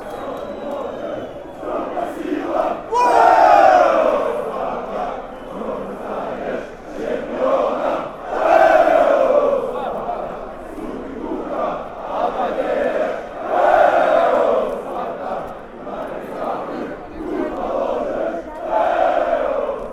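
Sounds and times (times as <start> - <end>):
football fans chanting: 0.0 - 19.9.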